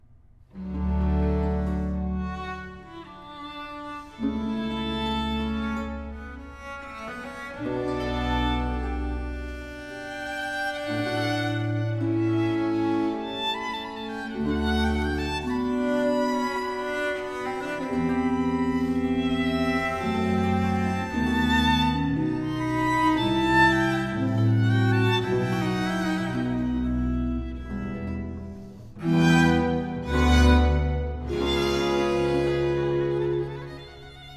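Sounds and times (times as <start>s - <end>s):
organ concerto adagio in G minor: 0.6s - 34.3s.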